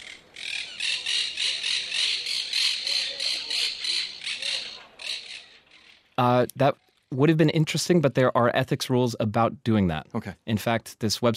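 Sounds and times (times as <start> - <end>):
monk parakeet calls: 0.0 - 6.1
speech: 6.2 - 11.3.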